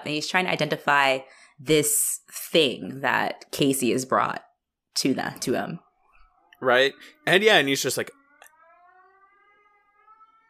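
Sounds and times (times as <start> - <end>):
speech: 0.0 - 5.8, 6.6 - 8.2
air raid siren wailing outside: 6.6 - 10.4.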